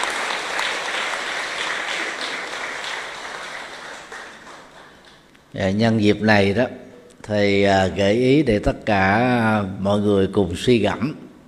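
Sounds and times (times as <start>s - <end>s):
audience applause: 0.0s - 5.2s
speech: 5.5s - 11.2s.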